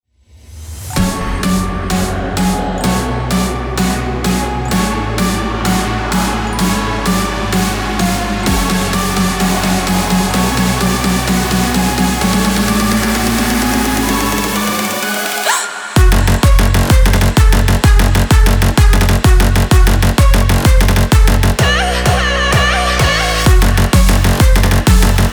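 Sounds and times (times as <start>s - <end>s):
music track in F sharp: 0.8s - 25.3s.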